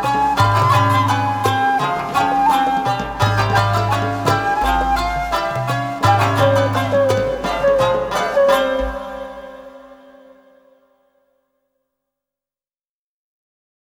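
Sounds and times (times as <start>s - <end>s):
taiko drums: 0.0s - 9.6s.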